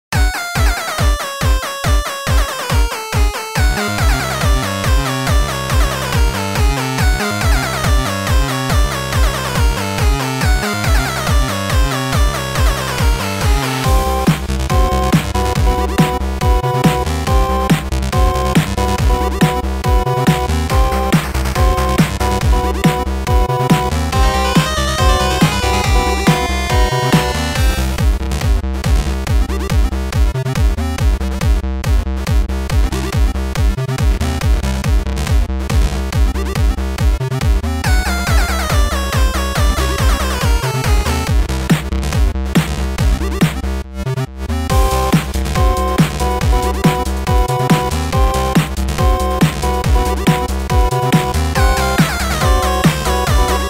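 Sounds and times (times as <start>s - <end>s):
8-bit remix music: 0.1s - 53.6s.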